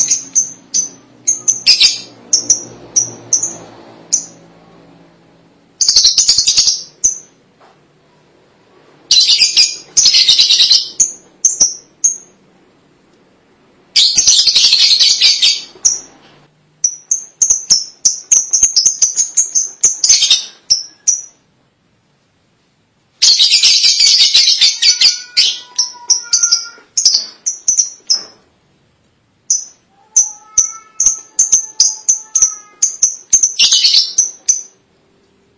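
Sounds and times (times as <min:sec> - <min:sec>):
lovebird chirping: 0:00.0 - 0:04.5, 0:05.8 - 0:07.4, 0:09.1 - 0:12.4, 0:14.0 - 0:21.5, 0:23.2 - 0:28.4, 0:29.4 - 0:34.9.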